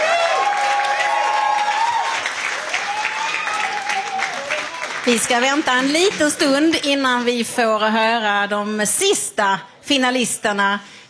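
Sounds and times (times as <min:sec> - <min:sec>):
whistling and cheering: 0:00.0 - 0:04.6
audience applause: 0:00.0 - 0:06.6
speech: 0:05.1 - 0:11.0.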